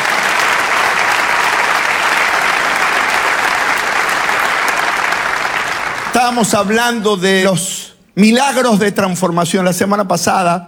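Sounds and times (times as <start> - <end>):
church congregation applauding during a service: 0.0 - 7.8
speech: 6.2 - 10.6.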